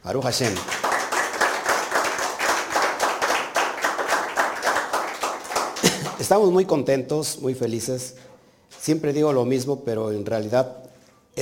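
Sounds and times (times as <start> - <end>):
speech: 0.0 - 0.8, 6.2 - 11.3
crowd clapping: 0.1 - 6.5.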